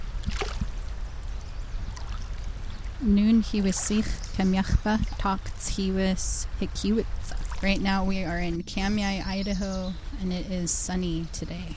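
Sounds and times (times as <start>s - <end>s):
water splashing: 0.0s - 1.1s, 1.8s - 5.6s, 7.2s - 8.5s
river water flowing: 0.0s - 9.3s
speech: 3.0s - 11.7s.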